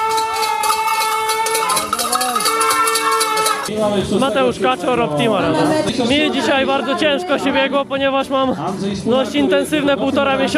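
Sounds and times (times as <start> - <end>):
cowbells ringing along race course: 0.0 - 3.7
fans cheering along race course: 0.0 - 3.7
speech: 3.7 - 10.5.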